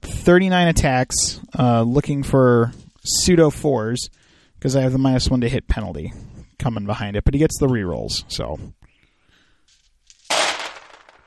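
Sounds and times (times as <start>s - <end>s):
speech: 0.2s - 8.8s
big handful of dice spilling out and clattering: 10.1s - 11.2s.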